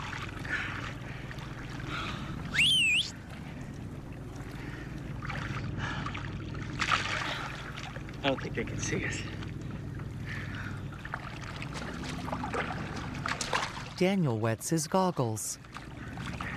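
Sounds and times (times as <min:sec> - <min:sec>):
distant boat on open water, low engine hum: 0:00.0 - 0:16.5
rising whistle-like tone: 0:02.5 - 0:03.2
speech: 0:08.3 - 0:09.4, 0:14.0 - 0:15.7.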